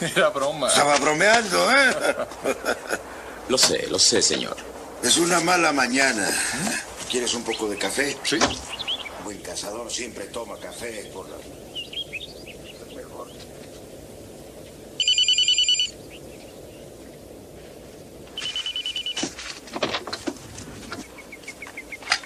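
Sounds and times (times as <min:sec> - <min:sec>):
laughter: 0:00.0 - 0:03.4
speech: 0:00.0 - 0:11.7
telephone ringing: 0:15.0 - 0:16.0, 0:18.4 - 0:19.3.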